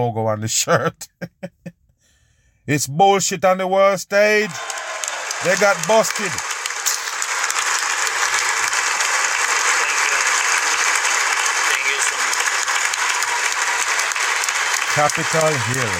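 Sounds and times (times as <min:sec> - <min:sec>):
speech: 0:00.0 - 0:01.6, 0:02.7 - 0:06.5, 0:15.0 - 0:15.9
audience clapping: 0:04.4 - 0:15.9.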